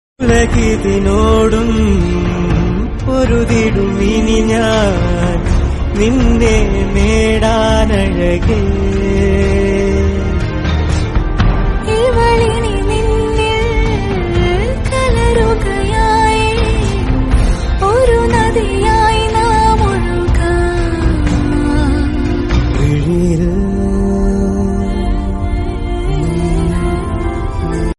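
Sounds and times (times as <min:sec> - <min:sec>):
Malayalam song: 0:00.2 - 0:27.9.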